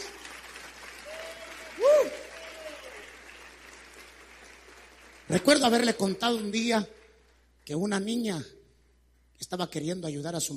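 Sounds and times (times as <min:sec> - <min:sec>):
crowd applauding: 0:00.0 - 0:07.0
swooping whistle or cheer: 0:01.0 - 0:03.1
speech: 0:05.3 - 0:07.0, 0:07.7 - 0:08.6, 0:09.4 - 0:10.5.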